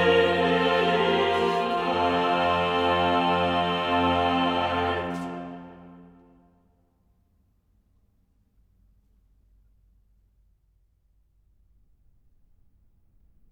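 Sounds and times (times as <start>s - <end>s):
chorale: 0.0s - 6.6s.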